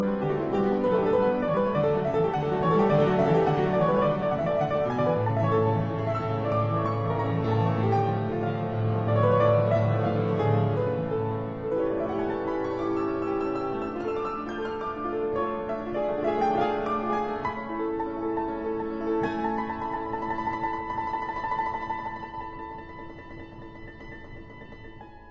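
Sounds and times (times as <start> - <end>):
piano sonata in G major, allegro molto vivace: 0.0 - 25.2.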